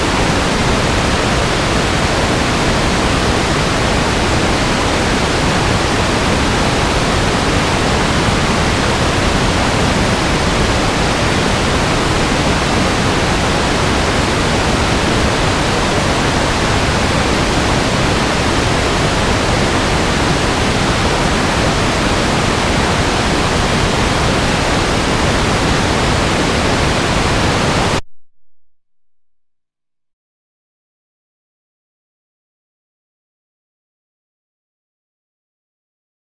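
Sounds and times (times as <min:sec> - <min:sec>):
hurricane roaring: 0:00.0 - 0:28.0.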